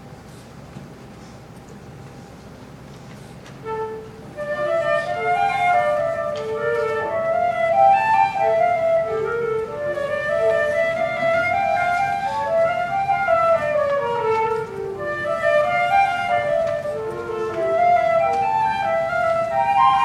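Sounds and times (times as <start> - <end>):
flute duet: 3.6 - 20.0.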